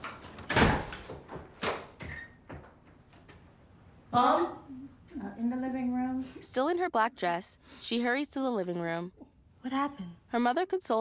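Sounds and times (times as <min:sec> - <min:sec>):
front door squeak: 0:01.6 - 0:02.5
speech: 0:04.1 - 0:04.8, 0:05.4 - 0:10.9.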